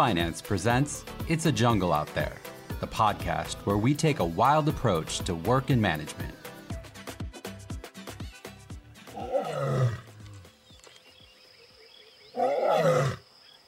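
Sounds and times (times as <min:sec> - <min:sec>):
speech: 0:00.0 - 0:06.4
lions roaring: 0:09.1 - 0:10.4, 0:12.3 - 0:13.2.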